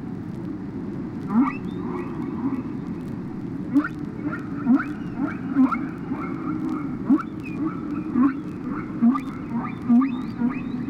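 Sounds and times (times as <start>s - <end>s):
whale calls: 1.3s - 3.0s, 3.7s - 10.8s.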